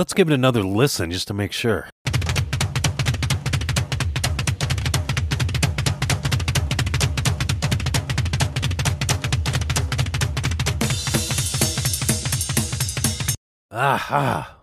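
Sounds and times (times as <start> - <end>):
speech: 0.0 - 1.9, 13.8 - 14.6
rapid rock drumming: 2.0 - 13.4.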